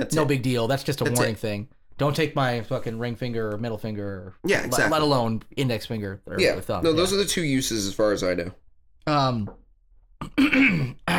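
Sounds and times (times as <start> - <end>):
speech: 0.0 - 9.6, 10.2 - 11.1
person gacking, clearing throat and coughing: 10.2 - 11.1.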